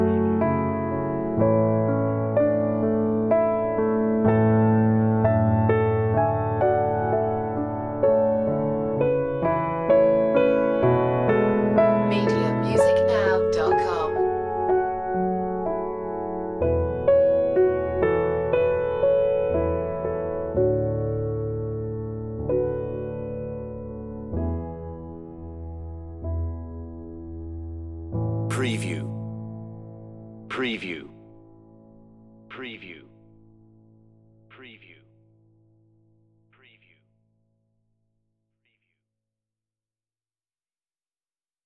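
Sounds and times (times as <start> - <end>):
solo piano: 0.0 - 32.5.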